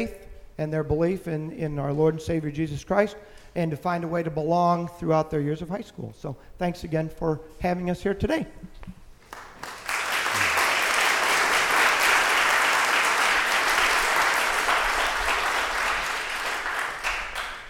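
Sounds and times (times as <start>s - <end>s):
speech: 0.0s - 9.0s
students clapping for their principal: 9.3s - 17.6s.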